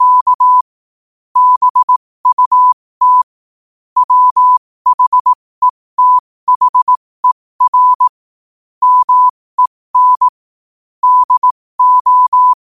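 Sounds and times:
morse code at 5 wpm: 0:00.0 - 0:00.6, 0:01.4 - 0:03.3, 0:04.0 - 0:08.2, 0:08.8 - 0:10.3, 0:11.0 - 0:12.6.

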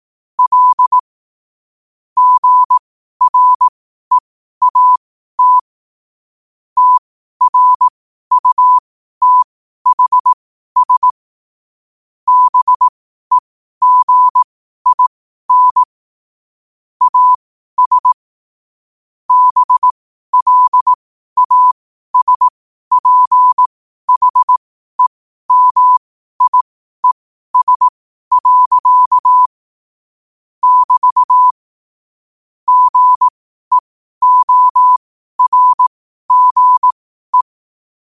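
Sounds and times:
morse code at 5 wpm: 0:00.4 - 0:01.0, 0:02.2 - 0:05.6, 0:06.8 - 0:11.2, 0:12.3 - 0:15.9, 0:17.0 - 0:18.2, 0:19.3 - 0:29.6, 0:30.6 - 0:31.6, 0:32.7 - 0:37.6.

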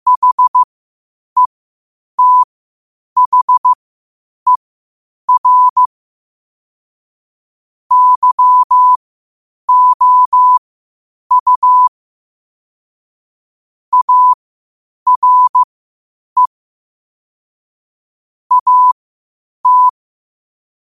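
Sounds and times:
morse code at 5 wpm: 0:00.1 - 0:00.7, 0:02.2 - 0:02.5, 0:03.2 - 0:03.8, 0:05.3 - 0:05.9, 0:07.9 - 0:09.0, 0:09.7 - 0:10.6, 0:11.3 - 0:11.9, 0:13.9 - 0:14.4, 0:15.1 - 0:15.7, 0:18.5 - 0:19.0, 0:19.6 - 0:19.9.

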